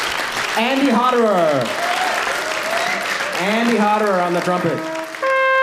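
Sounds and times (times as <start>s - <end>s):
audience applause: 0.0s - 5.5s
speech: 0.6s - 1.8s, 3.4s - 4.9s
person cheering: 1.2s - 5.0s.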